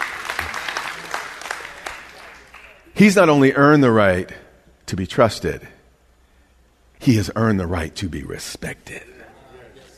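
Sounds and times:
audience applause: 0.0 - 2.9
speech: 3.0 - 5.8, 7.0 - 9.2.

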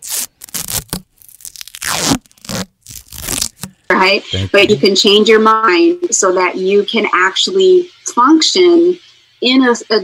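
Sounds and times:
tape being torn off a roll: 0.0 - 3.9
speech: 4.0 - 10.0.

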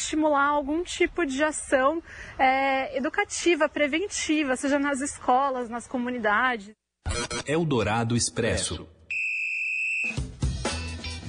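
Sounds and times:
speech: 0.1 - 9.0
referee whistle blast: 9.1 - 10.4.

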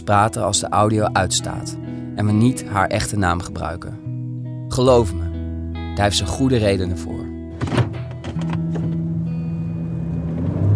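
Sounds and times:
speech: 0.0 - 4.0, 4.7 - 5.3, 6.0 - 7.8
car driving on the road: 7.6 - 10.7.

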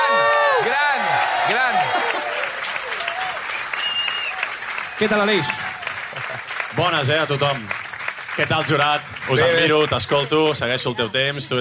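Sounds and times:
faint whoops and cheers: 0.0 - 6.1
audience applause: 0.0 - 11.5
speech: 5.0 - 5.6, 6.8 - 7.8, 8.4 - 11.5.

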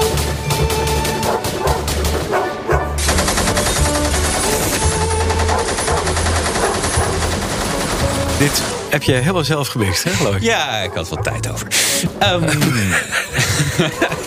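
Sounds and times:
machine gun fire: 0.1 - 2.4, 3.0 - 8.9
dogs barking: 1.1 - 3.0, 5.4 - 7.7, 9.6 - 12.2
speech: 8.5 - 14.2
laughter: 9.7 - 14.2.

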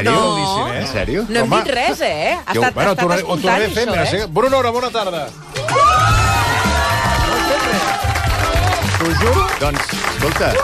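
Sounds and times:
speech: 0.0 - 6.2, 9.0 - 10.6
studio audience cheering and whooping: 5.5 - 10.6.

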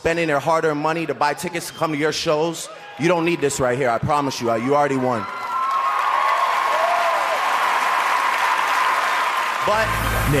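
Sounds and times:
speech: 0.0 - 5.4, 9.7 - 10.3
audience applause after a speech: 5.2 - 10.3
faint cheering and voices: 5.2 - 10.3.

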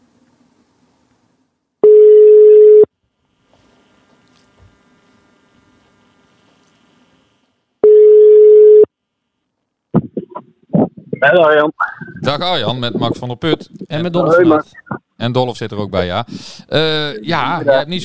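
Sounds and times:
telephone ringback tone while a call is being placed: 1.8 - 2.9, 7.8 - 8.9
speech: 11.2 - 18.0.

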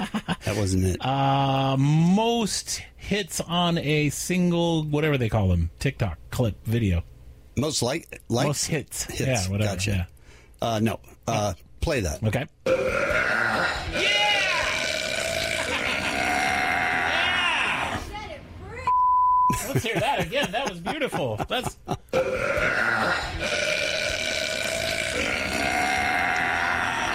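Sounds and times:
laughter: 0.0 - 0.6, 15.3 - 16.8, 19.5 - 22.1
speech: 0.5 - 14.2, 19.6 - 23.6
woman's world-record loudest female burp: 12.7 - 17.2, 22.1 - 27.1
short steady beep: 18.9 - 19.6.

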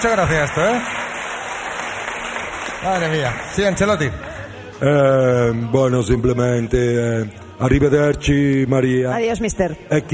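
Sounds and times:
speech: 0.0 - 1.0, 2.8 - 10.1
crowd applause: 0.0 - 4.9.

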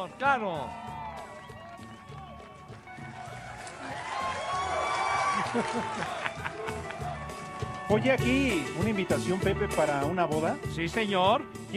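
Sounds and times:
speech: 0.0 - 0.9, 5.5 - 6.2, 7.9 - 11.7
crowd ovation, cheering and clapping: 0.0 - 8.7
laughter: 3.4 - 7.6.

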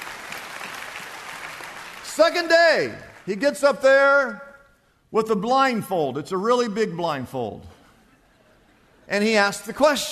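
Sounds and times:
crowd applauding: 0.0 - 3.4
speech: 2.2 - 4.4, 5.1 - 7.8, 9.1 - 10.0.

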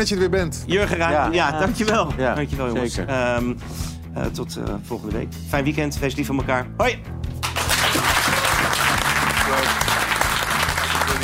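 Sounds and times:
speech: 0.0 - 7.2
audience applause: 7.4 - 11.2.

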